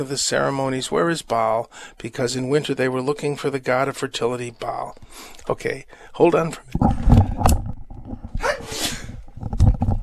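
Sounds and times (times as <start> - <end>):
speech: 0.0 - 7.5
sneeze: 8.4 - 9.1.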